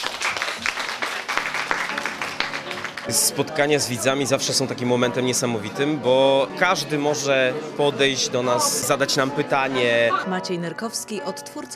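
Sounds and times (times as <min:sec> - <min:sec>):
audience applause: 0:00.0 - 0:04.6
speech: 0:03.1 - 0:11.7.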